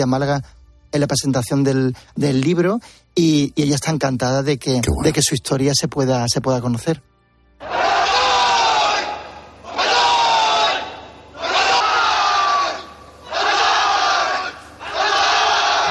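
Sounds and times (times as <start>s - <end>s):
speech: 0.0s - 7.8s
Japanese soldiers shouting banzai war cry: 7.6s - 15.8s.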